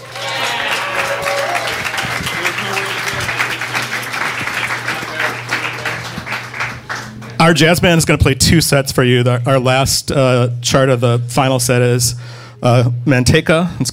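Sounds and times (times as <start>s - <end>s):
audience applause at a jazz band concert: 0.0s - 7.6s
speech: 7.4s - 13.9s.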